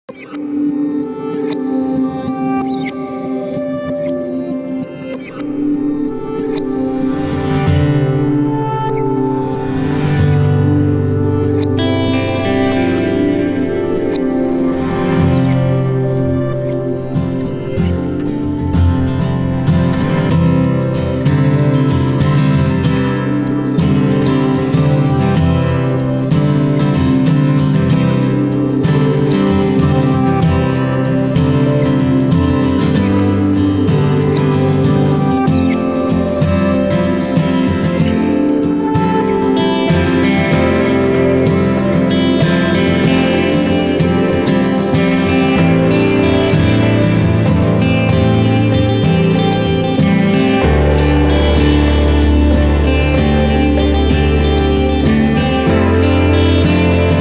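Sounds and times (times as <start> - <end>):
film music: 0.3 - 57.1.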